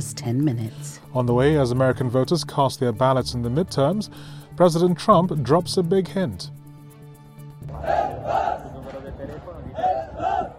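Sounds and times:
speech: 0:00.0 - 0:06.6
migrants on rescue ship shouting for help: 0:07.7 - 0:09.0, 0:09.7 - 0:10.5.

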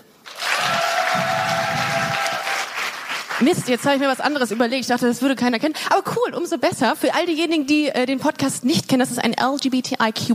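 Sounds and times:
audience clapping: 0:00.2 - 0:04.8
speech: 0:03.4 - 0:10.3.

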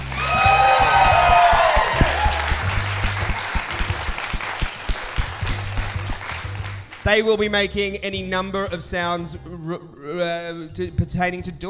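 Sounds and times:
audience applause: 0:00.0 - 0:07.0
speech: 0:07.1 - 0:11.6.

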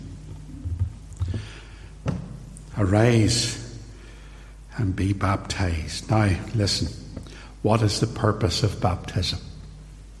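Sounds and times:
floor creaking underfoot: 0:00.0 - 0:02.7
speech: 0:02.8 - 0:03.6, 0:04.8 - 0:07.0, 0:07.6 - 0:09.5.

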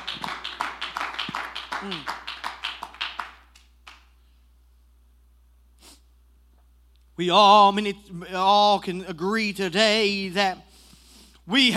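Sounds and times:
crowd clapping hands in a fast steady rhythm: 0:00.0 - 0:04.2
speech: 0:01.8 - 0:02.2, 0:07.2 - 0:10.7, 0:11.5 - 0:11.7.

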